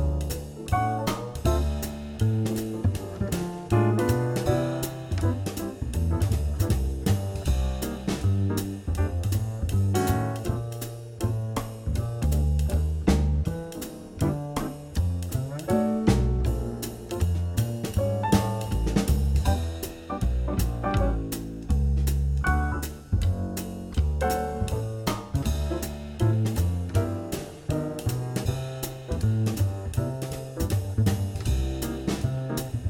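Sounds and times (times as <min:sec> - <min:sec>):
jazz etude: 0:00.0 - 0:32.8.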